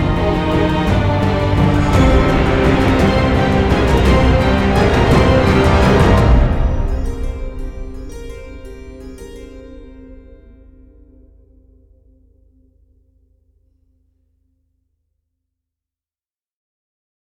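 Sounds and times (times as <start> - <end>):
choir: 0.0 - 9.0
orchestra: 0.0 - 10.5.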